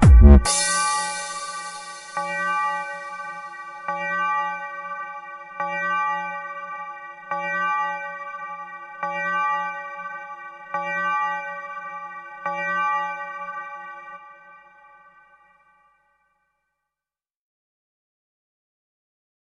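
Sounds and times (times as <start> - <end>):
bells ringing: 0.4 - 14.0.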